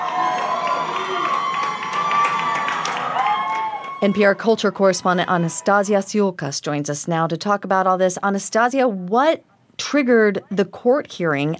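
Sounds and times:
crowd cheering and shouting outside a Baltimore courtroom: 0:00.0 - 0:06.0
speech: 0:04.0 - 0:11.5.

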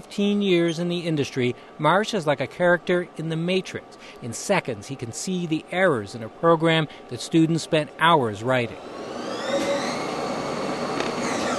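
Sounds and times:
speech: 0:00.1 - 0:09.0
computer-controlled precision lathe machining a student-designed part: 0:08.7 - 0:11.5.

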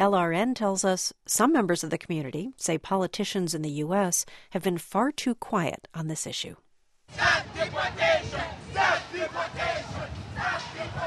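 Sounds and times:
speech: 0:00.0 - 0:11.0
protest crowd chanting: 0:07.1 - 0:11.0.

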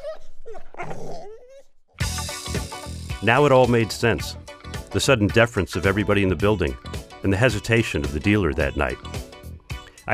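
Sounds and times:
dogs fighting and barking: 0:00.0 - 0:01.9
speech: 0:03.2 - 0:09.2.

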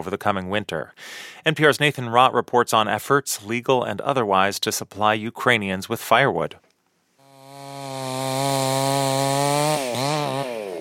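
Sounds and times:
speech: 0:00.0 - 0:06.7
man sawing a half-burnt tree: 0:07.2 - 0:10.7.

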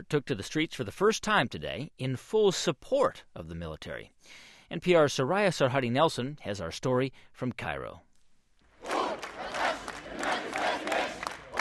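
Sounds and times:
speech: 0:00.1 - 0:08.1
street protest crowd chanting: 0:08.8 - 0:11.5.

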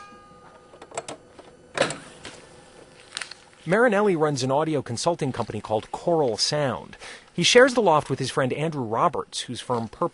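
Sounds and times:
tape threaded on a two-decade-old Ampex 1200 reel-to-reel deck in Queens: 0:00.6 - 0:02.4
speech: 0:03.6 - 0:10.1.

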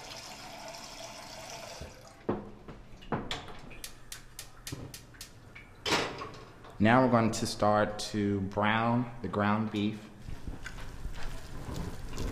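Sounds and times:
tap water filling a pot to boil: 0:00.0 - 0:02.4
speech: 0:06.8 - 0:10.1.

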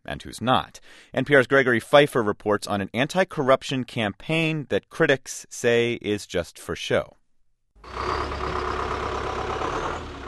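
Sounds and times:
speech: 0:00.1 - 0:07.2
heavy trucks passing through factory gates: 0:07.8 - 0:10.2.

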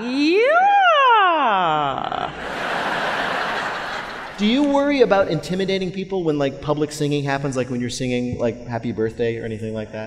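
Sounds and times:
voice imitating a siren: 0:00.0 - 0:02.4
laughter: 0:01.9 - 0:05.1
speech: 0:04.4 - 0:10.0.

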